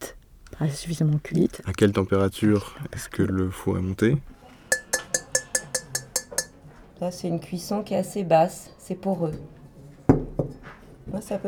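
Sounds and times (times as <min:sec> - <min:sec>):
speech: 0:00.6 - 0:04.4, 0:07.0 - 0:09.6, 0:11.1 - 0:11.4
fired clay roof tiles struck to test their firing: 0:04.7 - 0:06.6.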